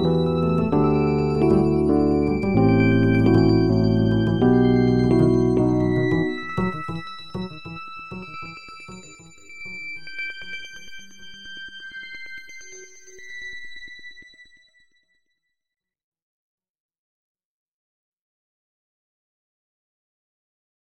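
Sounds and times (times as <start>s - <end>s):
music beat: 0.0s - 9.3s.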